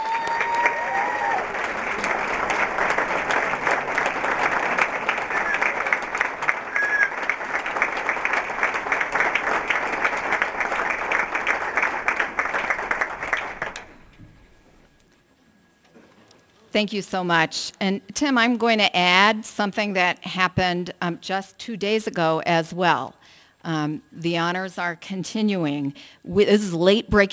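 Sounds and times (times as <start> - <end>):
large audience round of applause: 0.0 - 14.2
faint whistles from the audience: 4.4 - 7.4
speech: 16.8 - 27.3.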